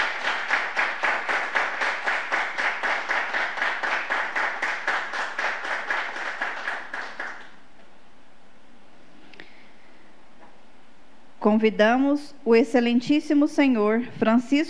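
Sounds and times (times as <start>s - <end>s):
rhythmic audience clapping in unison: 0.0s - 7.8s
speech: 11.4s - 14.6s.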